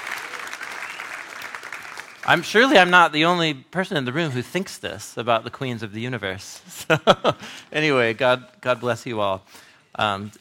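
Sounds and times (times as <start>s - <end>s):
audience clapping at a church gathering: 0.0s - 3.0s
speech: 2.3s - 10.3s.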